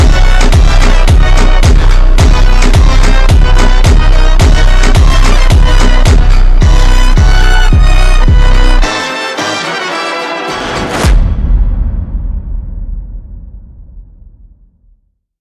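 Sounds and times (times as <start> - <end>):
slowed Mexican phonk music: 0.0 - 11.3.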